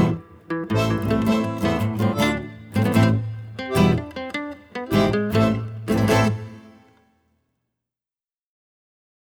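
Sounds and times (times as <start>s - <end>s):
tango music in A minor: 0.0s - 6.9s.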